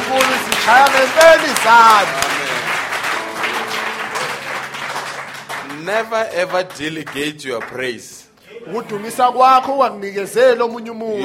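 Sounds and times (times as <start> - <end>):
audience clapping hands: 0.0 - 8.2
speech: 0.7 - 2.3, 5.8 - 11.2.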